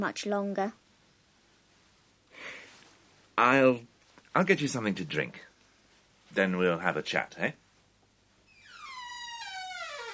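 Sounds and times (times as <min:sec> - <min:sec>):
speech: 0:00.0 - 0:00.8, 0:03.4 - 0:05.5, 0:06.3 - 0:07.6
creaking door hinges: 0:08.5 - 0:10.1.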